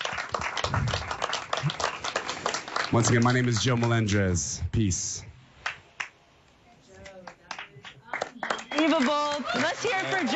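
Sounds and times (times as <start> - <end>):
audience clapping: 0.0 - 4.3, 5.6 - 6.2, 7.0 - 10.3
speech: 2.9 - 5.3, 9.0 - 10.3.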